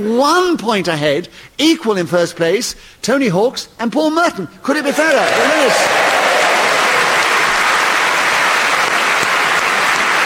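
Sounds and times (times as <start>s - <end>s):
speech: 0.0s - 6.2s
audience applause: 4.8s - 10.2s.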